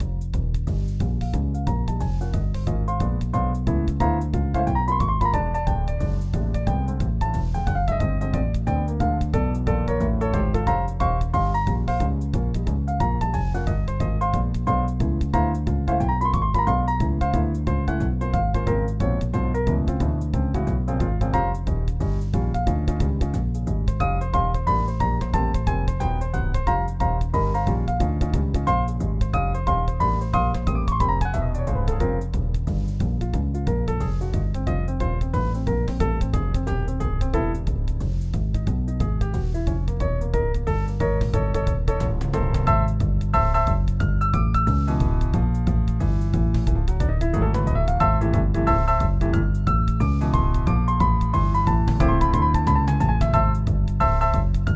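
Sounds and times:
jazz music: 0:00.0 - 0:54.7.

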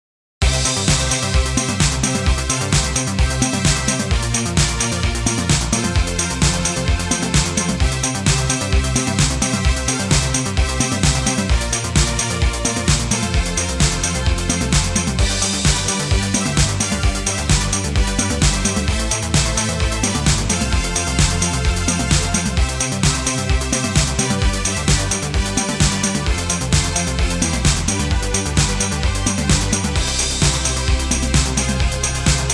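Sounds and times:
aerobics video intro: 0:00.4 - 0:32.5.

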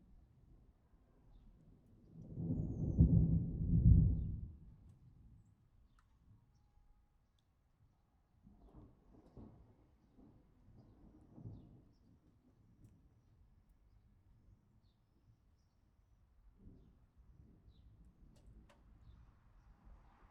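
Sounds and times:
thunder: 0:02.2 - 0:04.8, 0:08.5 - 0:12.0.

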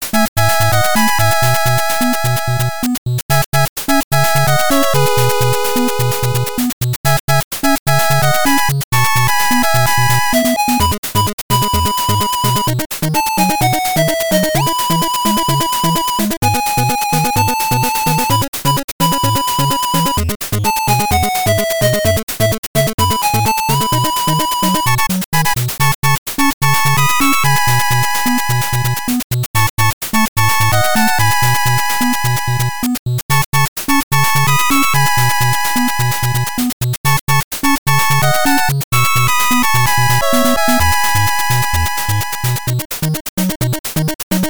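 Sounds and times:
8-bit action game music at 128 bpm: 0:00.0 - 0:44.4.

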